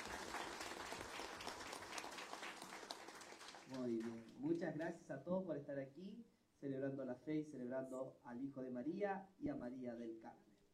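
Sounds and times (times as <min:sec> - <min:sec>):
applause: 0:00.0 - 0:04.8
speech: 0:03.7 - 0:10.5.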